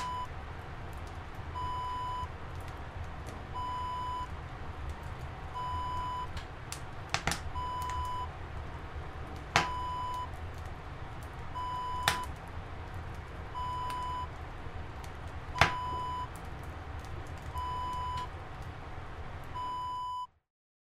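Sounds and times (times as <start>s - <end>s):
wood burning in a sauna: 0.0s - 20.0s.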